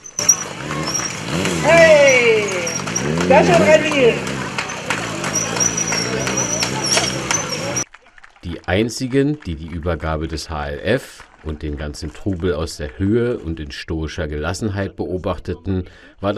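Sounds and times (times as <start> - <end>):
motorcycle engine during stunt show: 0.0 - 7.9
speech: 3.3 - 4.3, 8.7 - 16.3.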